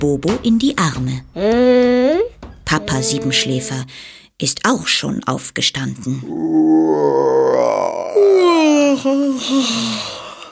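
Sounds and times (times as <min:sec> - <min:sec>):
speech: 0:00.0 - 0:10.1
person yawning: 0:06.3 - 0:10.4.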